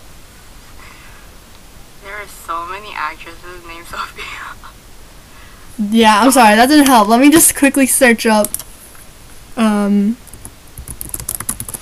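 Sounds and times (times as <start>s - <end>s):
speech: 2.2s - 4.9s, 5.8s - 8.6s, 9.6s - 10.2s
typing on a computer keyboard: 10.3s - 11.7s.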